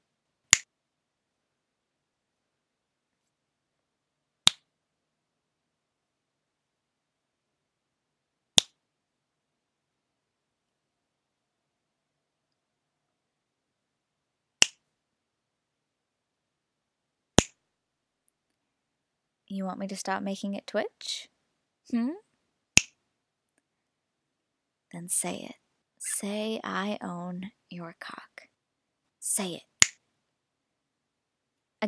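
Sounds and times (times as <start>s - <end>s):
finger snaps: 17.4s - 17.6s
speech: 19.5s - 21.3s, 21.9s - 22.3s, 24.9s - 28.5s, 29.2s - 29.7s.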